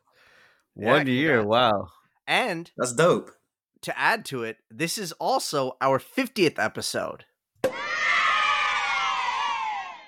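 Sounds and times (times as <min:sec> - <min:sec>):
speech: 0:00.8 - 0:07.3
chorus of children cheering from a Halo 3 skull: 0:07.7 - 0:10.0.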